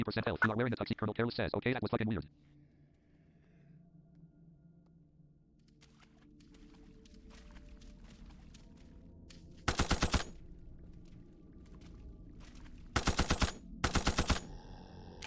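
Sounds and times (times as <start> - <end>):
speech: 0.0 - 2.6
faint video game ambience: 0.0 - 15.2
MP5 burst gunfire in a video game: 9.7 - 10.4, 13.0 - 14.5.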